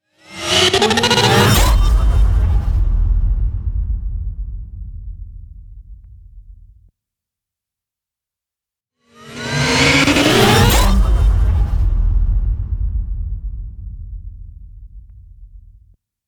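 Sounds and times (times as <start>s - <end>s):
fast futuristic transform effect: 0.2s - 4.4s, 9.2s - 13.8s.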